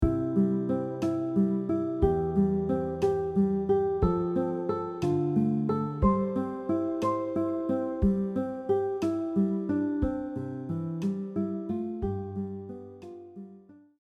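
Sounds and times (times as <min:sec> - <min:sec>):
guitar: 0:00.0 - 0:13.9.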